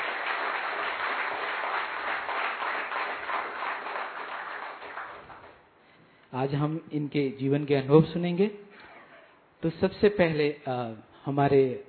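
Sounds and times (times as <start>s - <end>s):
audience applause: 0.0s - 5.6s
speech: 6.3s - 8.6s, 9.6s - 11.8s.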